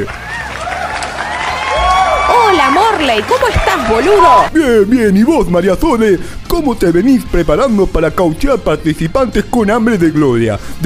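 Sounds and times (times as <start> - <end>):
audience applause: 0.0 - 4.5
audience cheering: 0.0 - 4.5
shrill swooping whistles and whoops: 0.2 - 4.4
speech: 3.0 - 10.8.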